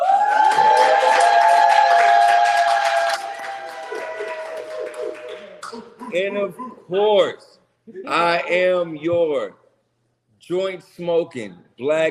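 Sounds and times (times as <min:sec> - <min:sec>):
sustained high cheer or whistle: 0:00.0 - 0:05.5
audience applause: 0:00.0 - 0:06.0
speech: 0:06.2 - 0:09.6, 0:10.4 - 0:12.0.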